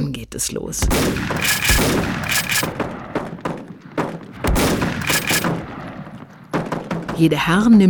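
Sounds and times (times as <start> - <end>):
speech: 0.0 - 2.9, 7.2 - 7.8
shotgun shots fired: 0.8 - 6.8.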